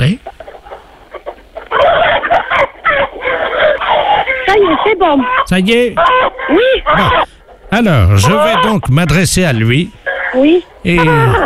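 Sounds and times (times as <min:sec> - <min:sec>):
speech: 0:00.0 - 0:00.3, 0:05.1 - 0:11.4
chickens clucking and squawking in a henhouse: 0:00.0 - 0:11.4.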